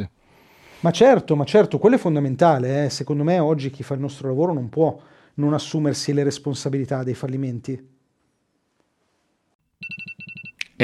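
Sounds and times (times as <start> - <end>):
speech: 0.8 - 8.0
alarm clock beeping: 9.8 - 10.8.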